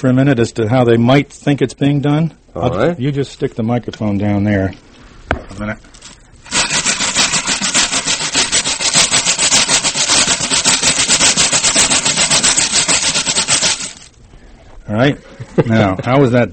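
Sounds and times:
speech: 0.0s - 5.9s, 14.9s - 16.5s
stiff wire brush scraped across sandpaper imitating a train: 6.0s - 14.2s.

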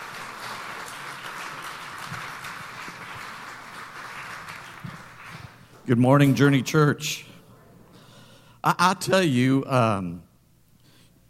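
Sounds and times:
church congregation applauding to welcome a pastor: 0.0s - 6.4s
speech: 5.9s - 7.3s, 8.6s - 10.3s.

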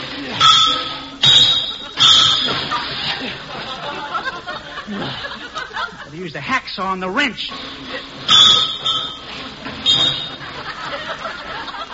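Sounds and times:
laughter: 0.0s - 6.4s, 7.5s - 11.9s
hammer striking a steel lever: 0.4s - 2.7s, 8.3s - 10.3s
speech: 6.2s - 8.7s.

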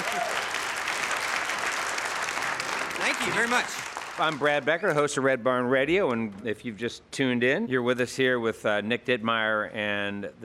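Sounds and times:
crowd applause: 0.0s - 5.0s
speech: 3.1s - 10.4s.

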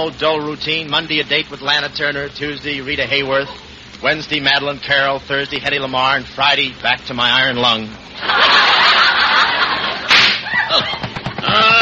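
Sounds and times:
speech: 0.0s - 8.8s
steady hiss: 0.0s - 11.7s
laughter: 8.2s - 11.7s
car tire blowout bang: 10.1s - 11.7s.

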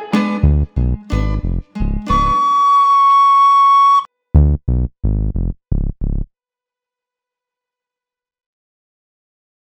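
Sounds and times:
instrumental music: 0.0s - 5.3s.

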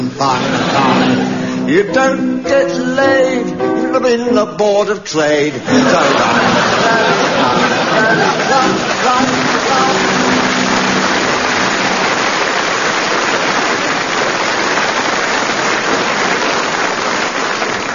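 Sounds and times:
speech: 0.2s - 0.9s, 1.7s - 7.0s, 8.1s - 10.0s
laughter: 0.2s - 1.8s, 5.6s - 11.3s
audience applause: 5.7s - 17.9s.

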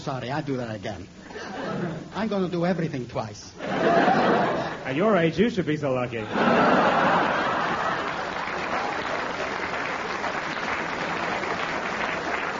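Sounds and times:
speech: 0.0s - 7.4s
laughter: 1.3s - 2.2s, 3.6s - 5.0s, 6.2s - 9.5s
audience applause: 6.4s - 12.5s.

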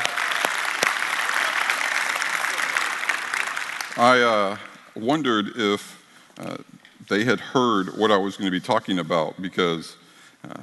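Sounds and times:
crowd applauding the band: 0.0s - 4.9s
speech: 4.0s - 10.6s.

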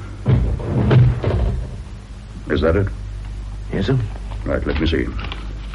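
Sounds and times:
door shutting: 0.2s - 1.9s
speech: 2.5s - 3.0s, 3.7s - 5.3s.

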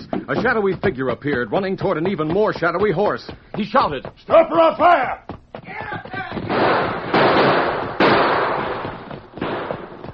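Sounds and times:
speech: 0.2s - 5.2s
roaring gunfire: 6.5s - 10.1s.

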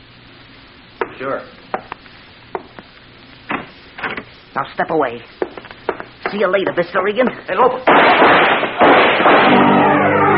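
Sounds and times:
speech: 1.2s - 1.6s, 4.6s - 5.4s, 6.3s - 10.0s
gunshots: 7.9s - 9.9s.

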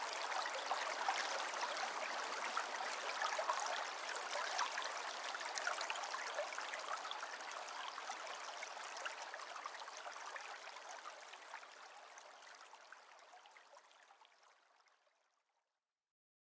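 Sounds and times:
tranquil stream flowing: 0.0s - 11.6s.

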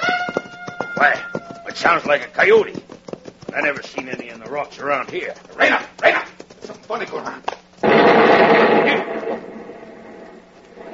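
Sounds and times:
speech: 1.0s - 2.9s, 3.5s - 6.1s, 6.9s - 9.5s
explosion blowing up rock: 7.8s - 10.1s.

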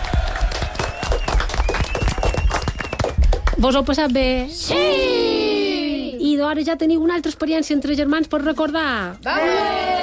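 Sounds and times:
audience applause: 0.0s - 3.6s
speech: 3.6s - 5.3s, 6.2s - 9.9s.

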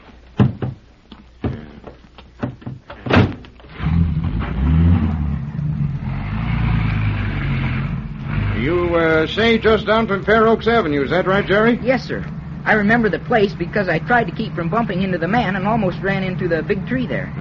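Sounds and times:
station wagon engine starting and running: 0.0s - 17.3s
station wagon doors thudding: 0.4s - 3.5s
speech: 9.2s - 17.3s.

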